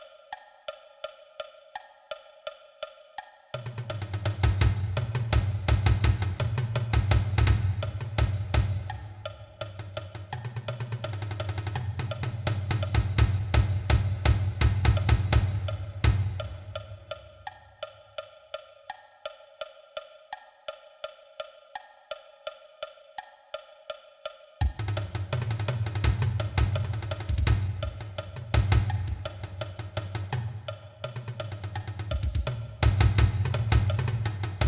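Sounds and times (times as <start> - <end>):
marching bass drum: 3.8 - 9.0, 11.7 - 16.8, 24.6 - 34.6.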